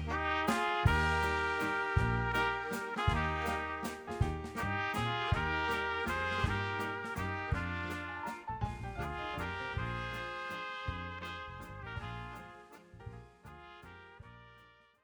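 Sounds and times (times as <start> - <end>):
waltz music: 0.0 - 10.5.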